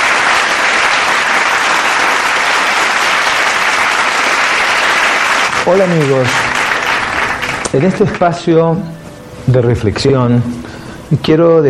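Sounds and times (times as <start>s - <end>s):
audience applause: 0.0s - 8.6s
speech: 5.7s - 6.5s, 7.7s - 11.6s.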